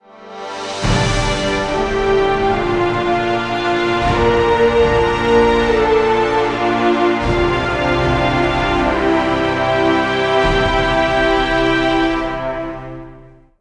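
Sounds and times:
results victory music sting: 0:00.8 - 0:13.3.

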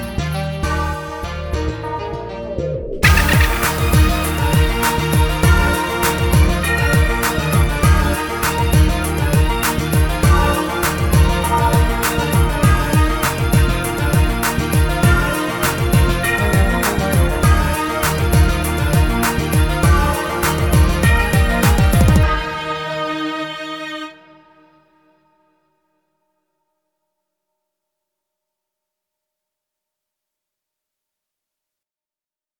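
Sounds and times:
spooky instrumental music: 0:00.0 - 0:24.1.

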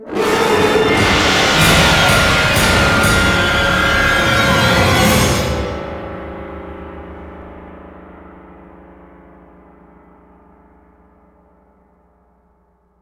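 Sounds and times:
musical stinger: 0:00.0 - 0:07.9.

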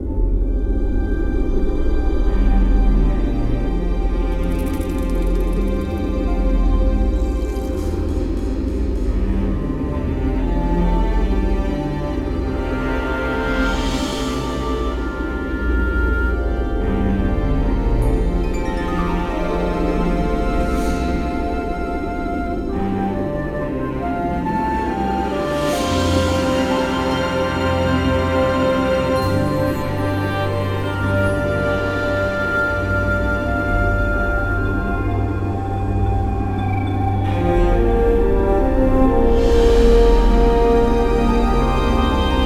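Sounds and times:
dark temple ambient music: 0:00.0 - 0:42.4.

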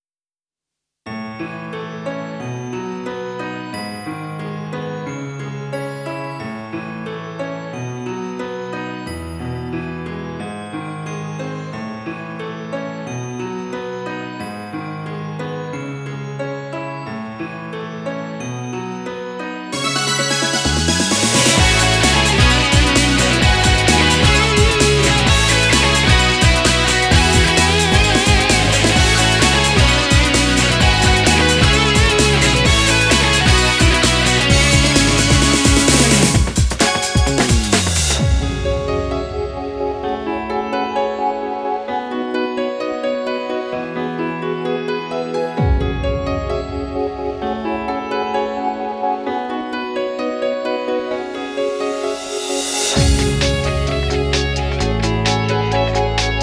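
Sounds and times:
instrumental music: 0:02.1 - 0:56.4.

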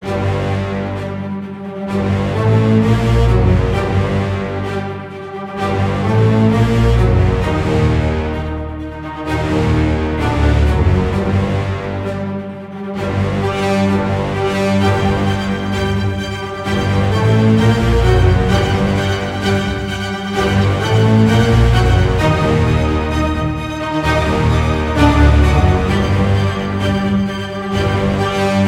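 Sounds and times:
epic battle music without drums: 0:00.0 - 0:28.6.

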